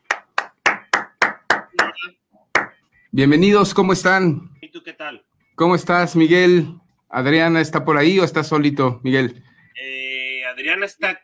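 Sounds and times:
applause: 0:00.0 - 0:02.0
speech: 0:02.0 - 0:02.2, 0:03.1 - 0:10.0, 0:10.6 - 0:11.2.

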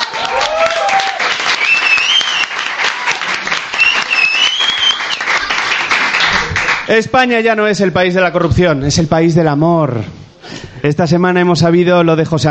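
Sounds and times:
steady dense audience applause: 0:00.0 - 0:06.9
faint whoops or whistles: 0:00.6 - 0:02.7, 0:03.7 - 0:05.3
speech: 0:06.9 - 0:10.2, 0:10.8 - 0:12.4.

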